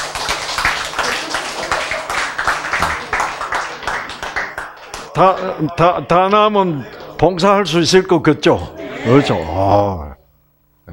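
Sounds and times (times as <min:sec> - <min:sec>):
hands clapping: 0:00.0 - 0:07.2
speech: 0:05.2 - 0:10.2.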